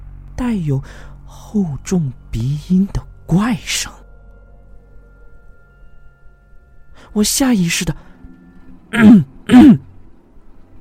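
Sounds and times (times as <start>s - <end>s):
speech: 0.4s - 4.0s, 7.1s - 8.1s, 8.9s - 9.9s
throat clearing: 8.9s - 9.9s.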